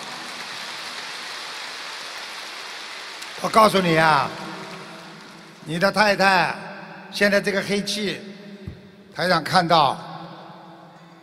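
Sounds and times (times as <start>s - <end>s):
audience applause: 0.0s - 6.0s
speech: 3.4s - 4.4s, 5.6s - 8.3s, 9.2s - 10.1s.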